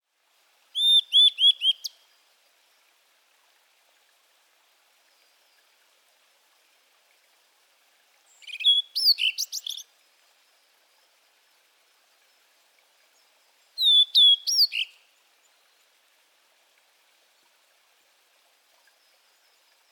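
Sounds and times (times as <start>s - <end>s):
Blue-and-white flycatcher Cyanoptila cyanomelana song: 0.7s - 2.0s, 8.4s - 9.9s, 13.8s - 15.0s.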